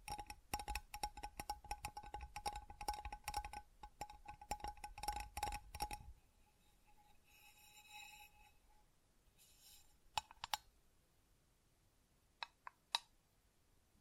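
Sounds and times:
quick dense taps with ringing tone: 0.0 - 6.1.

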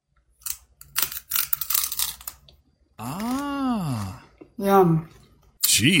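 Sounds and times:
person biting and chewing a crisp snack: 0.4 - 4.2
speech: 3.0 - 3.3, 4.6 - 5.2, 5.8 - 5.9.

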